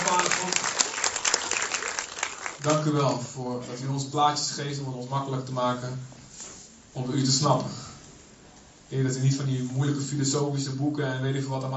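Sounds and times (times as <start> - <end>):
audience applause: 0.0 - 2.8
speech: 2.6 - 6.2, 6.9 - 7.8, 8.9 - 11.7.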